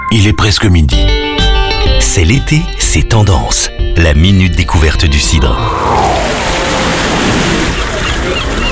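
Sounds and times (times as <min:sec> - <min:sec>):
speech: 0:00.1 - 0:01.3, 0:02.0 - 0:06.5
ocean waves washing onto the shore: 0:05.5 - 0:08.7.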